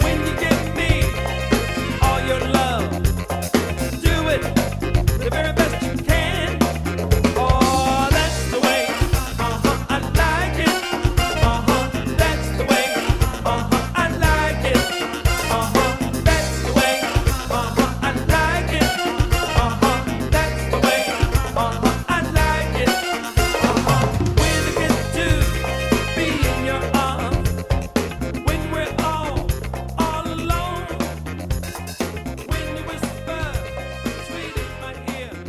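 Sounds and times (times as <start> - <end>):
variety band playing: 0.0 - 35.4.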